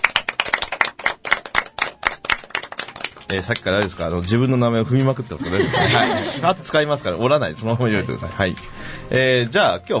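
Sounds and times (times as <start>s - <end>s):
hand clapping: 0.0s - 4.4s
speech: 3.3s - 9.9s
laughter: 5.0s - 7.9s.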